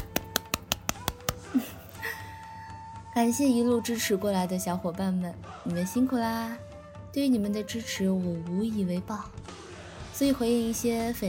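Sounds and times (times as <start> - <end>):
person clapping: 0.0 - 1.8
speech: 3.2 - 9.4, 10.2 - 11.2.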